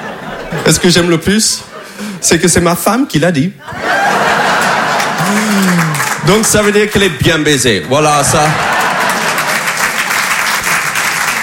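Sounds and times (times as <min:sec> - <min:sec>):
laughter: 0:00.0 - 0:02.2, 0:03.6 - 0:06.8, 0:08.1 - 0:10.2
speech: 0:00.5 - 0:04.0, 0:05.3 - 0:08.7
audience applause: 0:03.9 - 0:07.0, 0:08.4 - 0:11.4.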